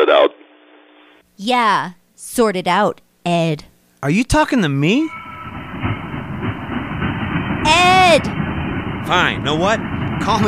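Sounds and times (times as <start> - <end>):
speech: 1.4 - 5.2, 8.1 - 8.4, 9.0 - 10.4
train cars clattering on rails: 5.1 - 10.4.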